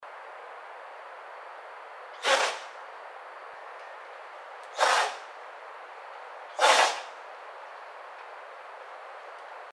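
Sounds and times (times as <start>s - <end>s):
White-tailed deer: 2.2s - 2.8s, 3.7s - 9.6s.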